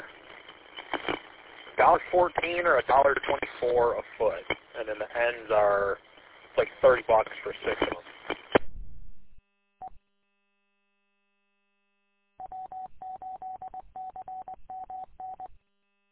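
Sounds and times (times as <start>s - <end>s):
DMR digital radio transmission: 0.0s - 8.6s
speech: 1.8s - 8.1s.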